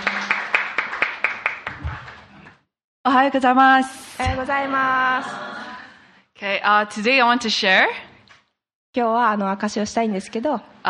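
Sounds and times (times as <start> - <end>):
audience clapping in unison: 0.0 - 2.6
speech: 3.1 - 5.5, 6.4 - 8.0, 9.0 - 10.8.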